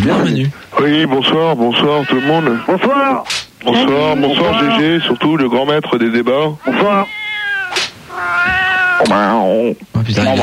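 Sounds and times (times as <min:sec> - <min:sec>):
speech: 0:00.0 - 0:07.2, 0:09.0 - 0:10.4
cat meowing: 0:01.7 - 0:05.6, 0:06.6 - 0:09.5.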